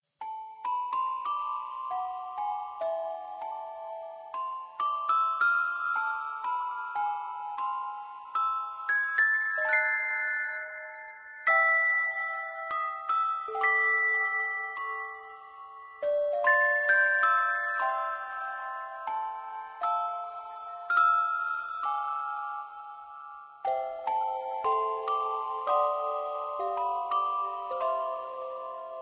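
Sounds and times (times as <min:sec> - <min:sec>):
creepy christmas ringtone: 0:00.2 - 0:29.0.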